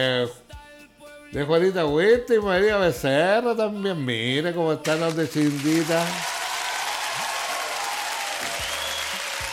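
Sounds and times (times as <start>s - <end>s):
speech: 0.0s - 0.5s, 1.3s - 6.4s
applause: 4.9s - 9.5s.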